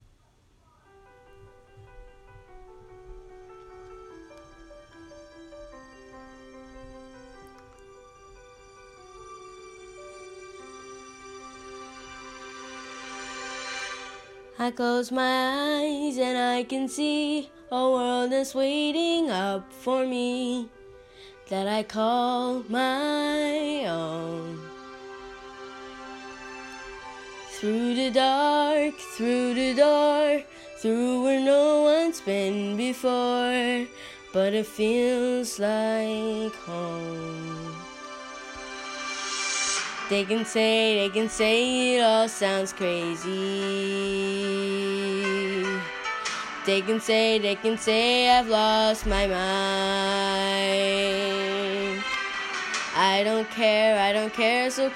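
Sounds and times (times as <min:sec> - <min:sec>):
woman singing in English: 0:14.5 - 0:20.8, 0:21.4 - 0:24.8, 0:27.5 - 0:38.0, 0:40.0 - 0:54.9.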